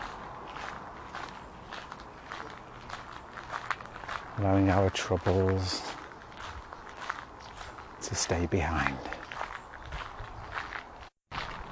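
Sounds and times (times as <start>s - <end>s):
footsteps on loose gravel path: 0.0s - 11.6s
speech: 4.4s - 5.9s, 8.1s - 9.2s.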